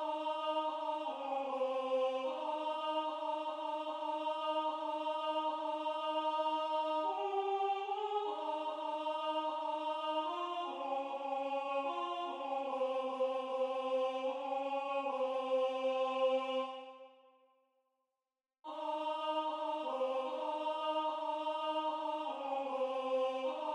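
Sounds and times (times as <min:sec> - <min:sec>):
choir singing: 0:00.0 - 0:17.3, 0:18.7 - 0:23.7.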